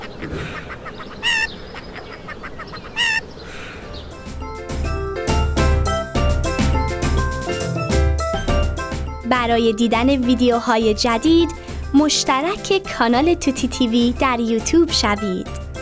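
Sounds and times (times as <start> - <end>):
chicken squawking: 0.0 - 3.9
speech: 0.2 - 0.7, 9.4 - 15.6
repeated rhythmic pounding hits: 4.2 - 12.0.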